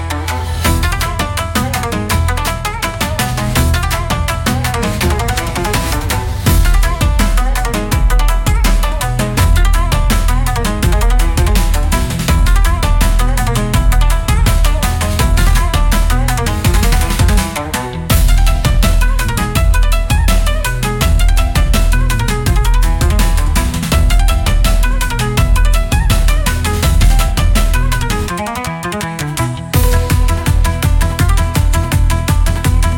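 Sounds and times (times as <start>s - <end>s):
cinematic Japanese style battle music: 0.1s - 28.3s, 29.7s - 32.9s.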